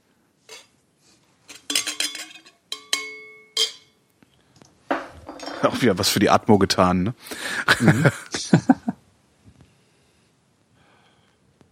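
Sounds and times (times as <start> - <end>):
tasting glass clinking and scraping: 0.4 - 0.8, 1.4 - 4.0, 4.9 - 5.9
speech: 5.6 - 8.8
laughter: 7.7 - 9.0.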